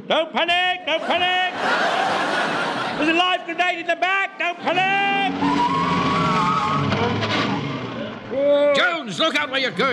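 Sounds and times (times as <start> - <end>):
speech: 0.1 - 5.8, 8.3 - 9.9
laughter: 0.8 - 5.9
van engine droning as the van turns round and drives off: 4.6 - 9.9.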